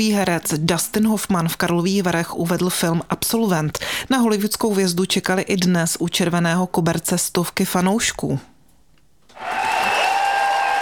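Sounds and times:
speech: 0:00.0 - 0:08.5
standing ovation for actor Dustin Hoffman in the large hall of Hotel Thermal, Karlovy Vary: 0:09.4 - 0:10.8.

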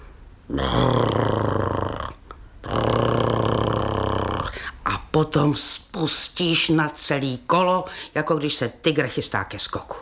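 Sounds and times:
speech: 0:00.5 - 0:01.4, 0:05.2 - 0:10.0
person imitating snoring: 0:00.5 - 0:04.7.

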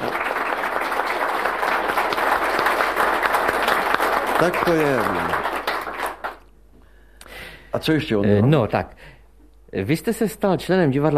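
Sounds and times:
audience applause: 0:00.0 - 0:06.5
speech: 0:04.4 - 0:05.4, 0:07.7 - 0:09.1, 0:09.7 - 0:11.1.

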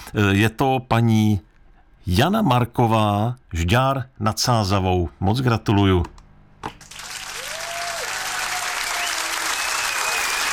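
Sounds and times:
speech: 0:00.1 - 0:06.8
audience applause for a finalist: 0:06.8 - 0:10.5.

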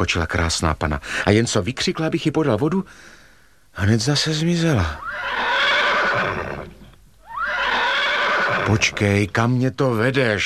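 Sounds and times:
speech: 0:00.0 - 0:03.2, 0:03.8 - 0:05.5, 0:08.6 - 0:10.4
horse neighing: 0:05.0 - 0:09.1.

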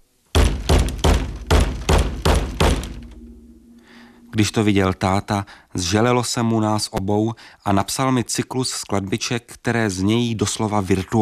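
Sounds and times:
plastic tub hitting a head: 0:00.4 - 0:03.2
speech: 0:04.3 - 0:11.2.

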